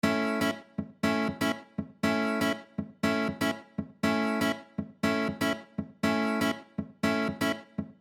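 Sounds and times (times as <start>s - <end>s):
rhythm guitar: 0.0s - 8.0s.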